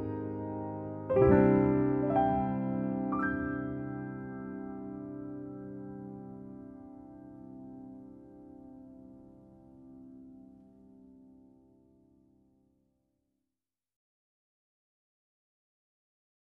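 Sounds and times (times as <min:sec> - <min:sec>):
main theme piano piece: 0:00.0 - 0:12.5.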